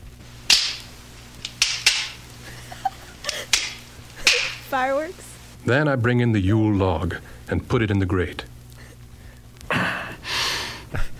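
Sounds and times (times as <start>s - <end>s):
low steady hum: 0.0s - 11.1s
kindling sticks snapped by hand: 0.4s - 2.4s, 3.2s - 4.9s
laughter: 2.4s - 3.6s, 4.2s - 4.7s
speech: 4.7s - 8.5s.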